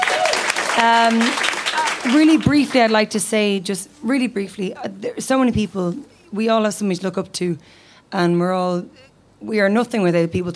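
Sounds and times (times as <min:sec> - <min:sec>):
audience applause: 0:00.0 - 0:03.0
speech: 0:00.8 - 0:10.5.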